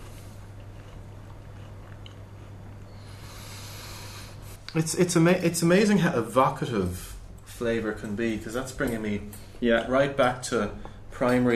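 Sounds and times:
crunchy biting and chewing of battered food with a vinegar and sugar gastric: 0.0 - 4.2
speech: 4.7 - 11.5.

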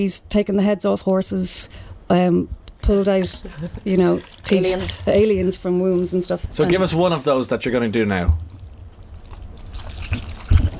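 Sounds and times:
speech: 0.0 - 8.5
wet chamois squelched for gory foley: 9.2 - 10.7.

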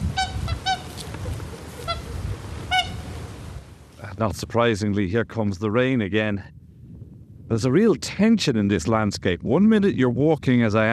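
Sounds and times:
whooper swans bugling honks: 0.0 - 3.6
speech: 4.2 - 6.6, 7.5 - 10.9.

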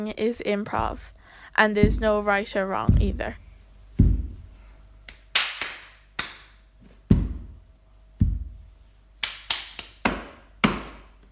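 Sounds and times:
speech: 0.0 - 3.4
foot and knees banging on floor: 0.7 - 4.5, 6.8 - 7.6, 8.2 - 8.7
hands slapping floor: 5.0 - 7.6, 9.2 - 11.3.

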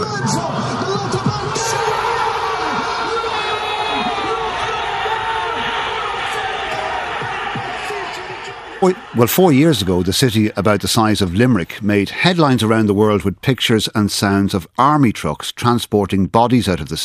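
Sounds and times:
football fans cheering a goal in city: 0.0 - 12.8
speech: 8.8 - 17.0.

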